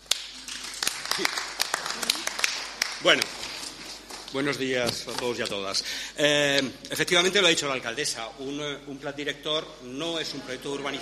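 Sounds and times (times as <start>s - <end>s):
audience applause: 0.0s - 4.3s
speech: 1.2s - 1.5s, 3.0s - 3.4s, 4.3s - 10.9s.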